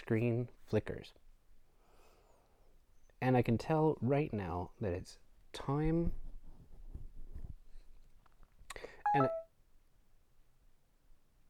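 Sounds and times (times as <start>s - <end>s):
speech: 0.1s - 1.2s, 3.2s - 6.2s, 8.8s - 9.4s
beep indicator tone: 9.1s - 9.5s.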